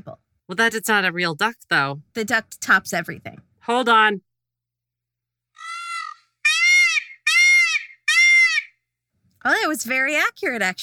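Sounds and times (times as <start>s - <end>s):
speech: 0.5s - 4.3s, 9.4s - 10.8s
voice imitating a peacock call: 5.6s - 8.8s.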